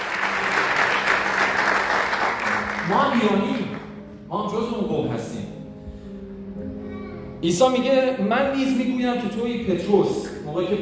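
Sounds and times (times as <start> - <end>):
congregation clapping during a church sermon: 0.0 - 4.0
speech: 2.9 - 3.7, 4.3 - 5.6, 7.4 - 10.8.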